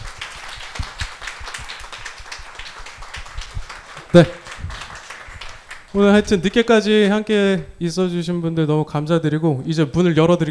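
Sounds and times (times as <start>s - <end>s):
audience applause: 0.0s - 6.6s
speech: 4.1s - 4.4s, 6.0s - 10.4s.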